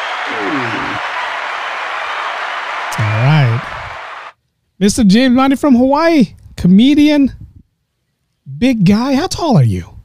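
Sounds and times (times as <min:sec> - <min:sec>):
audience applause: 0:00.0 - 0:04.3
speech: 0:04.8 - 0:07.4, 0:08.5 - 0:09.9.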